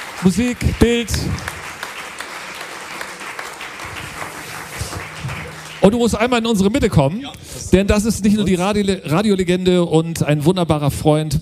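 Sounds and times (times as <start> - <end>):
audience applause: 0.0 - 8.3
speech: 0.2 - 1.6, 5.8 - 11.3.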